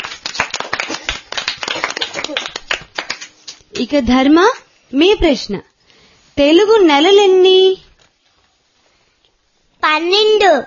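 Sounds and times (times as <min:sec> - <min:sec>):
audience clapping for a small girl: 0:00.0 - 0:03.9
speech: 0:03.8 - 0:05.7, 0:06.4 - 0:07.8, 0:09.8 - 0:10.6.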